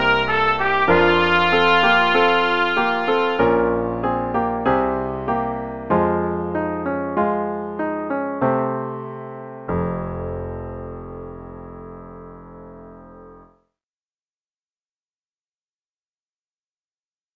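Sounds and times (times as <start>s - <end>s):
instrumental piece without dynamics: 0.0s - 13.5s.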